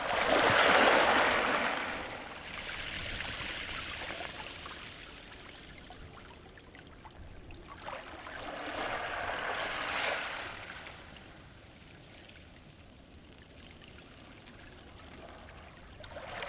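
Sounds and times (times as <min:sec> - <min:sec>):
waves with pebbles at Allihies: 0:00.0 - 0:05.8, 0:07.7 - 0:11.4.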